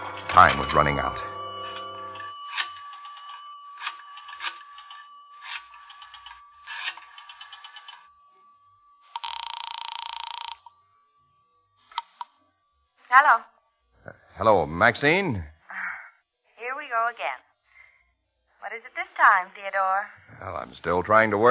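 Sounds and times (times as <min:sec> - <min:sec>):
telephone ringing from a phone booth: 0:00.0 - 0:10.8
speech: 0:00.3 - 0:01.3, 0:14.4 - 0:15.5, 0:18.8 - 0:21.5.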